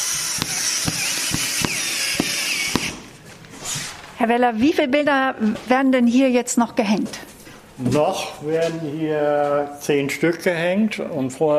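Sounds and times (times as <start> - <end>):
electric drill: 0.0 - 3.9
speech: 4.2 - 7.2, 7.8 - 11.5.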